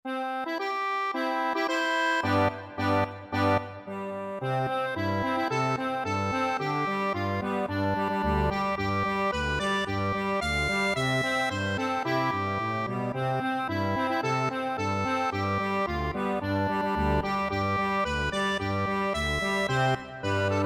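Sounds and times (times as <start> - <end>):
accordion: 0.1 - 20.6.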